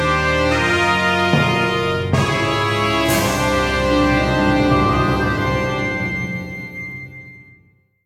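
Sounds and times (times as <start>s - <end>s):
battle victory jingle: 0.1s - 7.5s.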